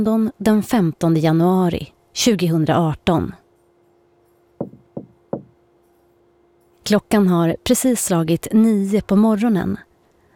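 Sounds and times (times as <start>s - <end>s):
speech: 0.0s - 3.4s, 6.9s - 9.9s
hotel cleaner knocking on a hotel room door: 4.6s - 5.6s.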